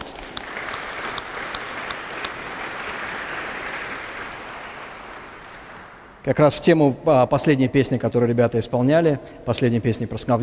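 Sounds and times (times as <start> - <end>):
church service audience applauding a worship band: 0.0 - 6.2
speech: 6.2 - 10.4.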